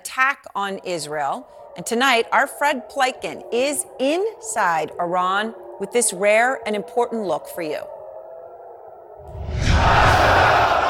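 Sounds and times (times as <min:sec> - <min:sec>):
speech: 0:00.2 - 0:08.0
crowd screaming death to America at Tehran's main Friday prayers: 0:09.6 - 0:10.8.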